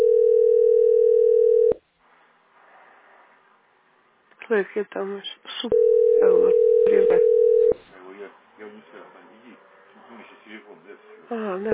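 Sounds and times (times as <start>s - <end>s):
telephone dial tone: 0.0s - 1.8s, 5.7s - 7.8s
speech: 4.5s - 7.4s, 8.2s - 11.7s.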